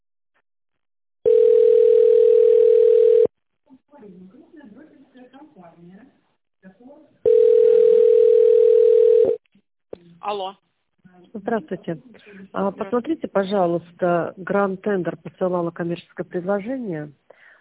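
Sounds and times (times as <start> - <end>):
telephone ringback tone: 1.2 - 3.3, 7.2 - 9.4
speech: 11.3 - 17.2.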